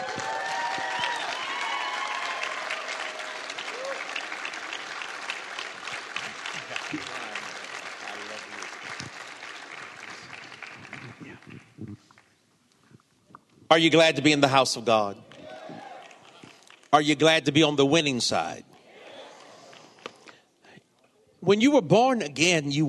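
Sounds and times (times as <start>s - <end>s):
church congregation applauding at a morning service: 0.0s - 12.4s, 15.2s - 17.4s
speech: 13.7s - 15.3s, 17.0s - 18.8s, 21.5s - 22.8s.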